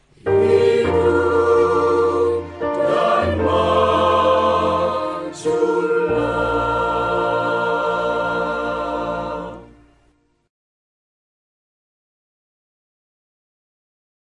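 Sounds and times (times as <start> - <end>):
instrumental music: 0.0 - 10.4.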